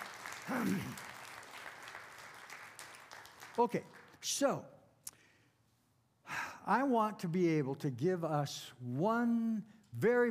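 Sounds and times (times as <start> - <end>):
audience clapping: 0.0 - 4.2
speech: 0.5 - 1.1, 3.6 - 4.8, 6.6 - 10.2.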